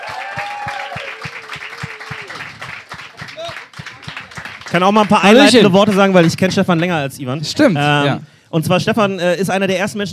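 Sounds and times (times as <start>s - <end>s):
sustained wavering whoop: 0.0s - 2.4s
voices cheering: 0.0s - 6.2s
audience rhythmic clapping: 0.0s - 7.1s
speech: 4.7s - 10.1s.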